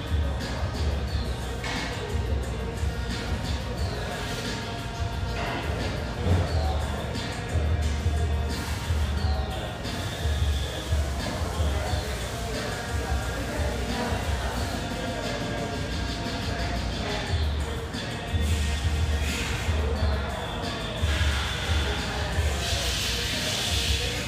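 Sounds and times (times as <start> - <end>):
café chatter: 0.0 - 24.2
upbeat music with thumping low beat in a high-rise café: 0.0 - 24.2.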